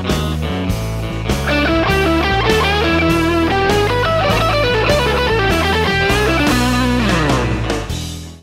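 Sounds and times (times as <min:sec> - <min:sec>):
guitar lick: 0:00.1 - 0:07.9.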